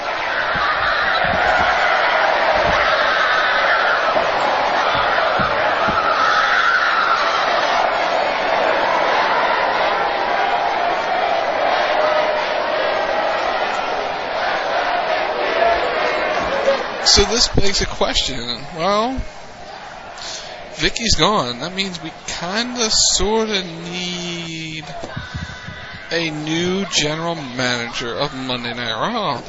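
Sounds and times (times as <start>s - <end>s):
scattered shouts from the wrestling crowd: 0.0s - 29.4s
wrestling crowd cheering goodbye: 0.0s - 29.4s
speech: 17.2s - 19.4s, 20.2s - 25.5s, 26.1s - 29.4s.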